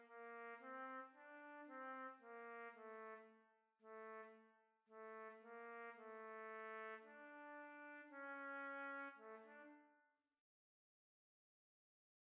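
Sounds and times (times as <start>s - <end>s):
trumpet playing: 0.0s - 3.2s, 5.0s - 9.8s.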